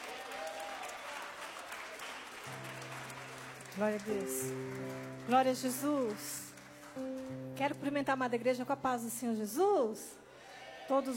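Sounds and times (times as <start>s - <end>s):
audience applause: 0.0s - 7.6s
speech: 3.8s - 10.2s, 10.9s - 11.1s.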